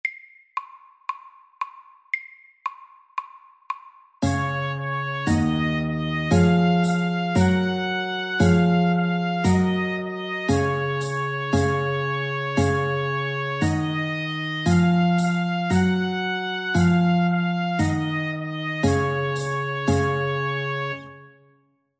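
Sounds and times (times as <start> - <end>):
Norwegian folk tune: 4.2 - 21.5.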